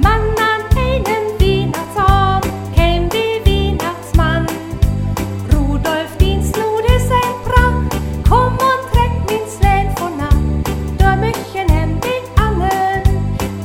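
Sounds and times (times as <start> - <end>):
person singing: 0.0 - 4.8, 5.5 - 10.4, 11.0 - 13.2.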